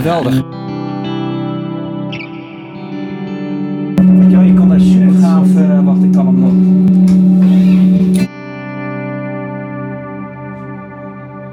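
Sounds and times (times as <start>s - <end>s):
speech: 0.0s - 0.6s
Wet Stereo Reverb effect: 4.0s - 8.3s.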